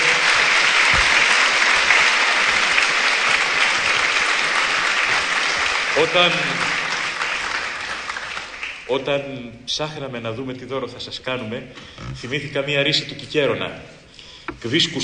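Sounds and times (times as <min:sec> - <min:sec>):
audience applause: 0:00.0 - 0:08.9
speech: 0:06.0 - 0:06.8, 0:08.9 - 0:14.0, 0:14.6 - 0:15.0.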